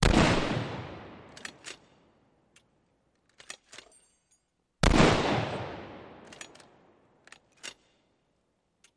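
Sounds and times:
.50 caliber gun firing: 0:00.0 - 0:01.7, 0:04.8 - 0:06.8
.50 caliber gun reloading: 0:01.2 - 0:04.2, 0:06.0 - 0:08.1.

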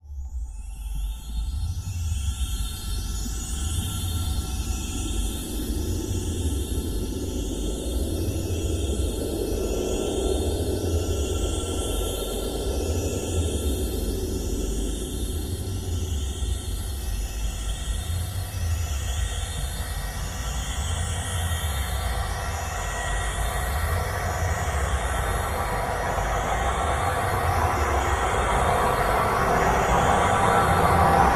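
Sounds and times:
distant low pulsing drone: 0:01.1 - 0:31.3.

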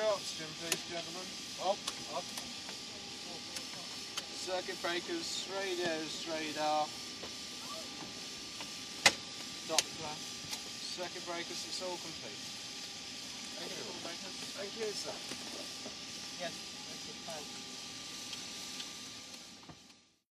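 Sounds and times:
707 aircraft engines heard from cockpit interior: 0:00.0 - 0:20.2.

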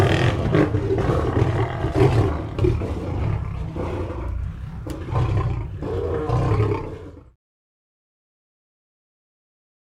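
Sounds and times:
lion roaring: 0:00.0 - 0:07.4.

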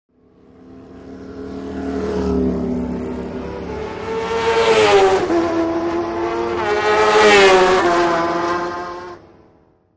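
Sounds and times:
motorcycles road racing: 0:00.1 - 0:09.7.

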